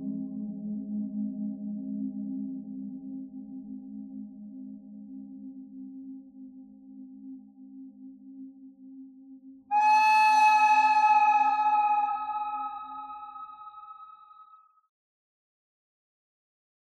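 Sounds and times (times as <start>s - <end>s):
pentatonic bird melody: 9.7s - 14.4s.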